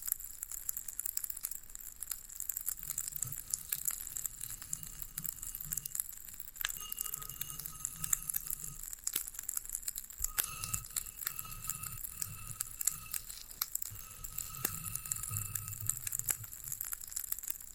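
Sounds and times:
floral foam crackling while handled and pressed: 1.8s - 17.7s
soft low rumbling: 2.8s - 9.0s, 10.2s - 17.1s
faint tonal whines: 2.8s - 9.1s, 10.2s - 17.1s.

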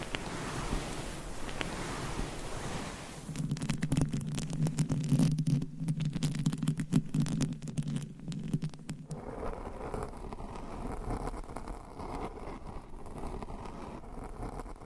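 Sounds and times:
scratching and rubbing rustle: 0.0s - 14.8s
rapid dense tapping and scratching: 3.3s - 14.8s.

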